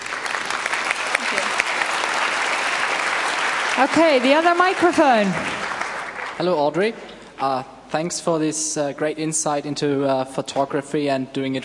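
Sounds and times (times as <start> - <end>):
audience applause: 0.0 - 6.6
speech: 3.8 - 5.5, 6.4 - 11.6.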